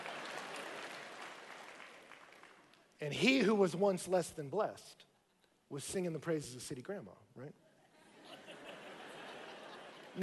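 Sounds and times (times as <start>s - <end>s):
audience applause: 0.0s - 2.8s
speech: 3.0s - 5.1s, 5.7s - 7.6s
laughter: 7.8s - 10.2s.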